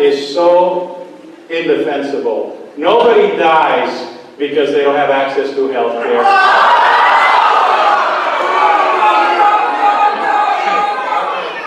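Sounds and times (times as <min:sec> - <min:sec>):
speech: 0:00.0 - 0:06.9
town hall audience murmur at Lewis Clark State College in Lewiston: 0:06.0 - 0:11.6.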